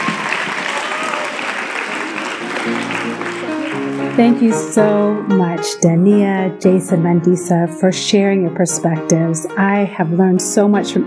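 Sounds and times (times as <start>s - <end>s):
audience applause: 0.0s - 4.8s
speech: 4.2s - 11.0s.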